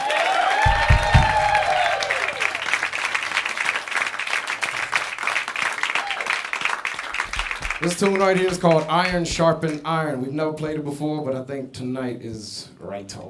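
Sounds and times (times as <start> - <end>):
audience whistles and cheers: 0.0 - 2.8, 5.8 - 6.5
live audience clapping for a musician: 0.0 - 9.8
speech: 7.8 - 13.2.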